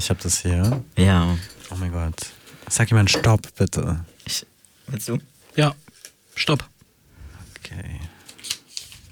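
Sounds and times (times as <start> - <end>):
speech: 0.0 - 5.8, 6.4 - 6.7, 7.6 - 8.1
folded paper question slip from a candy jar crinkling as it is unfolded: 7.5 - 9.0.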